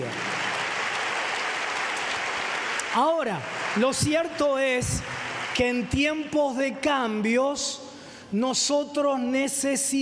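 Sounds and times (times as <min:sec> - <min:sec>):
crowd clapping: 0:00.0 - 0:06.5
speech: 0:02.9 - 0:10.0.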